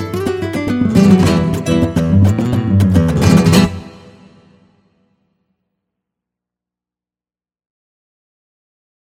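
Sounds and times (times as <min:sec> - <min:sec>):
guitars: 0:00.0 - 0:05.0.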